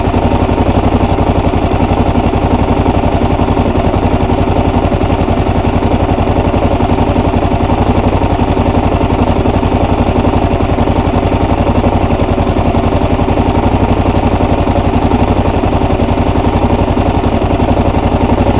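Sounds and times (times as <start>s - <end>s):
KLR650 motorcycle riding: 0.0s - 18.5s.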